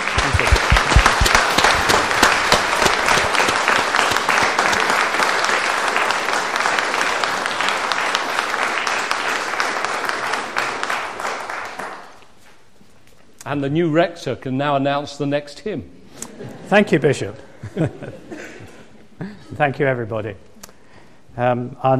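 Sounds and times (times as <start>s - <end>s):
audience applause: 0.0s - 12.2s
speech: 13.5s - 18.4s, 19.2s - 20.5s, 21.4s - 21.9s
laughter: 16.2s - 19.6s.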